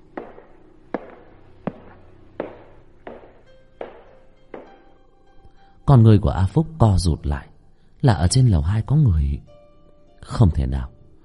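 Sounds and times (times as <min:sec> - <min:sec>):
footsteps on a staircase: 0:00.0 - 0:04.9
speech: 0:05.9 - 0:09.5, 0:10.2 - 0:10.9.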